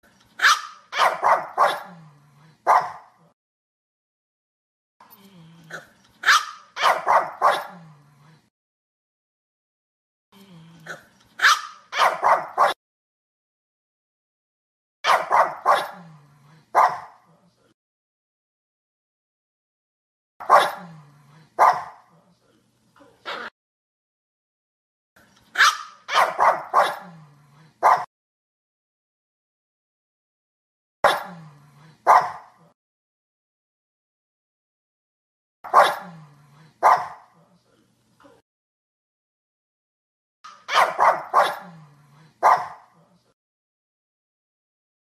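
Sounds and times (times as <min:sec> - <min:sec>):
phoc dog barking: 0:00.4 - 0:02.0, 0:02.6 - 0:03.4, 0:06.2 - 0:07.8, 0:11.4 - 0:12.8, 0:15.0 - 0:16.1, 0:16.7 - 0:17.3, 0:20.4 - 0:20.9, 0:21.6 - 0:22.2, 0:23.3 - 0:23.5, 0:25.6 - 0:27.2, 0:27.8 - 0:28.1, 0:31.0 - 0:31.4, 0:32.0 - 0:32.8, 0:35.7 - 0:36.2, 0:36.8 - 0:37.4, 0:40.5 - 0:41.8, 0:42.4 - 0:43.0.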